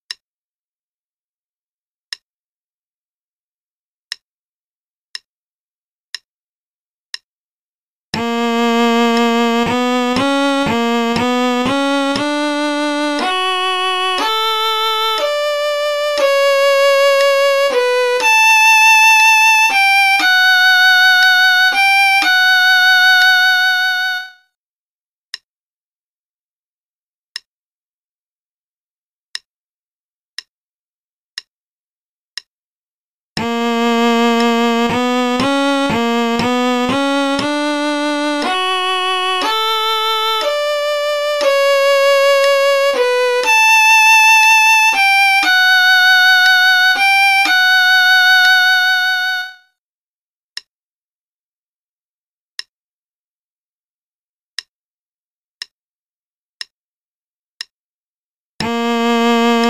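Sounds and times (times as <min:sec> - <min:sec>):
play-along concerto in B minor at 60 bpm: 0:08.2 - 0:24.3, 0:33.4 - 0:49.6, 0:58.6 - 0:59.6.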